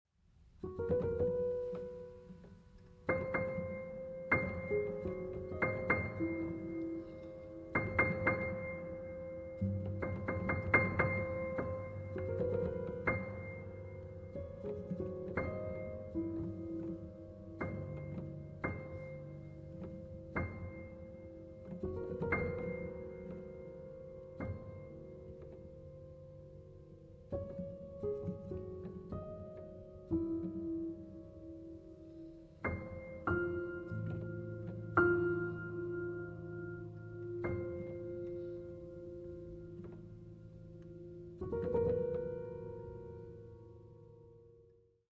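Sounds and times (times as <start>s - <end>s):
twittering upright piano: 0.5s - 44.8s.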